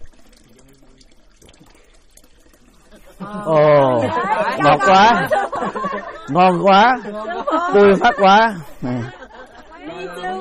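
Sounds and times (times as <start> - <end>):
mineral spring water trickling and splashing near Beopryun Temple: 0.0 - 9.6
laughter: 2.9 - 10.4
speech: 3.2 - 9.2.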